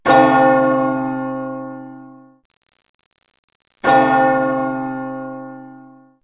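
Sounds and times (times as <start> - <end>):
bell: 0.1 - 2.3, 3.9 - 6.1.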